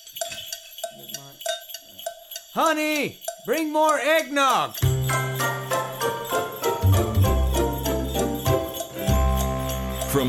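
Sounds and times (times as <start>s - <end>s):
bells ringing: 0.0s - 10.2s
speech: 2.6s - 4.9s.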